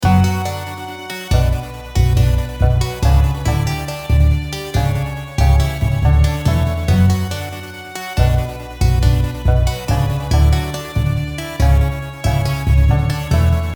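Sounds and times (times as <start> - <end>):
harmony: 0.0 - 13.7.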